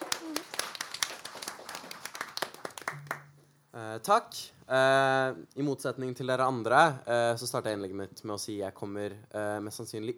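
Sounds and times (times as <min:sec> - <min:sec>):
audience applause: 0:00.0 - 0:03.2
speech: 0:03.8 - 0:10.1.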